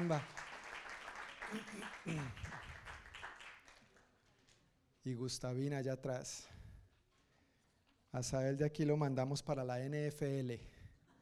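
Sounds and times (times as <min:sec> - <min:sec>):
speech: 0:00.0 - 0:00.4, 0:01.5 - 0:02.7, 0:05.0 - 0:06.6, 0:08.1 - 0:10.8
audience applause: 0:00.0 - 0:04.0.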